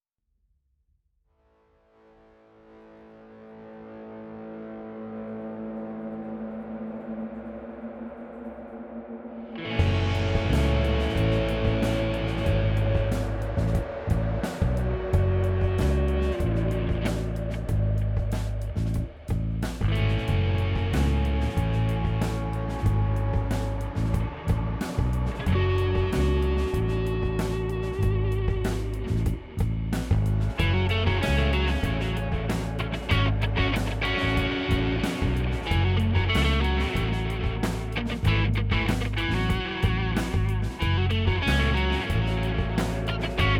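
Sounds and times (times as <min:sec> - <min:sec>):
guitars: 0:09.5 - 0:43.5.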